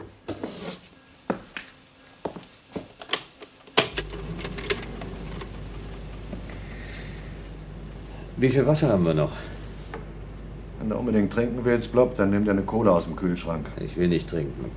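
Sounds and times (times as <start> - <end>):
air filter being switched on: 3.9 - 9.0
speech: 8.4 - 9.5, 10.9 - 14.7.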